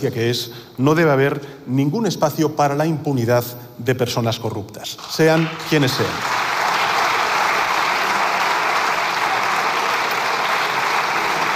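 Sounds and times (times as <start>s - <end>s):
speech: 0.0s - 6.5s
applause from the socialist parliament benches: 5.0s - 11.5s.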